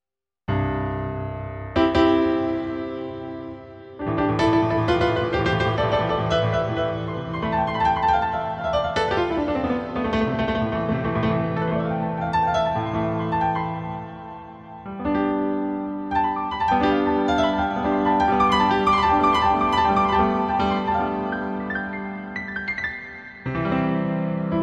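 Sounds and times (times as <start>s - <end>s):
piano: 0.5s - 24.6s.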